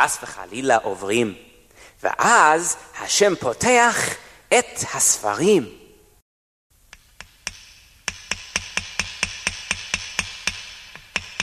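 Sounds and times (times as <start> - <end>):
speech: 0.0 - 5.8
hammering nails into wood: 6.9 - 11.4.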